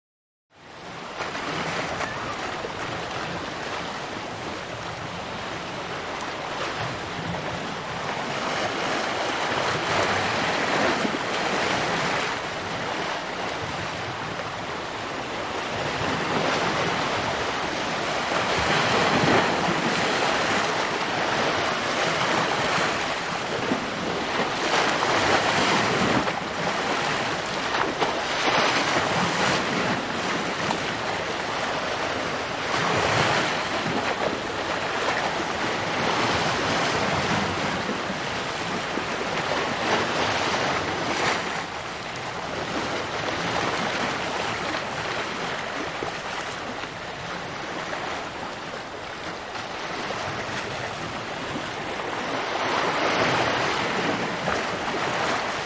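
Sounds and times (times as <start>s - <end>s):
ship bow wash: 0.6s - 55.6s.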